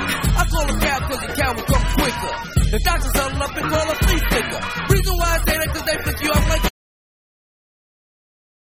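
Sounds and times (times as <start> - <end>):
vocals: 0.0 - 6.8.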